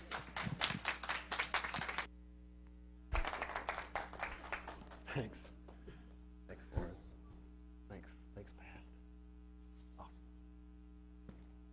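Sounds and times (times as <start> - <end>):
audience clapping to welcome a speaker on stage: 0.0 - 2.1, 3.1 - 5.2
speech: 5.2 - 5.6.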